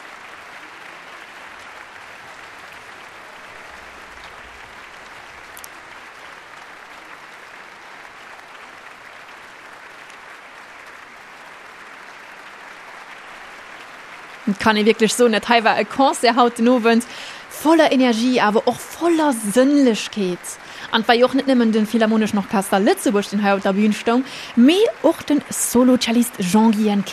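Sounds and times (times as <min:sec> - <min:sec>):
applause for an orchestra in a concert hall: 0:00.0 - 0:27.1
speech: 0:14.5 - 0:27.1.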